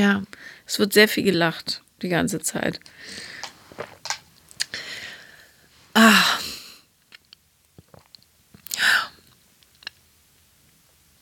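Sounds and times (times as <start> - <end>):
speech: 0.0 - 4.0, 6.0 - 6.4
wet mouth clicks and gulps of someone taking a sip of a drink: 7.1 - 8.8.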